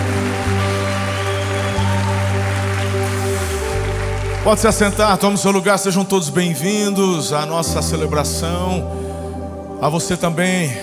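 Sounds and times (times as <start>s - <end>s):
audience applauding: 0.0s - 5.4s
sustained keyboard chord droning: 0.0s - 10.8s
speech: 4.5s - 9.2s, 9.8s - 10.8s.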